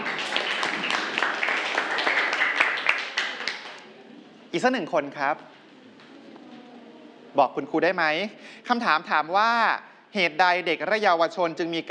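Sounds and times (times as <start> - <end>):
students applauding a classmate: 0.0 - 3.9
speech: 4.6 - 5.6, 7.4 - 11.8.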